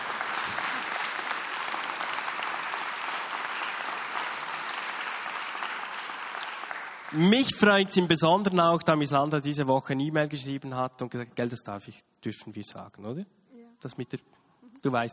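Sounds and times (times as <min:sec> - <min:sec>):
audience applause: 0:00.0 - 0:07.7
speech: 0:07.1 - 0:15.1.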